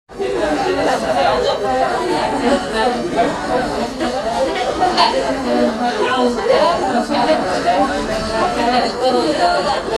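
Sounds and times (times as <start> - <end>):
busy restaurant crowd: 0.1 - 9.9.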